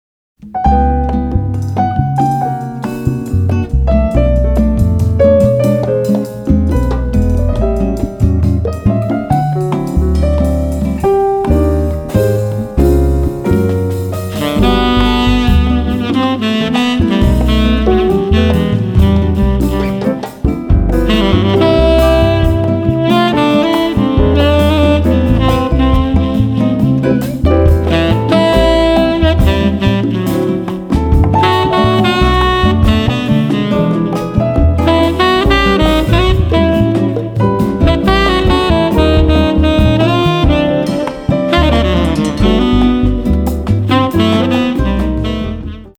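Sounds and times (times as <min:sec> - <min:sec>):
bossa nova music: 0:00.4 - 0:45.9.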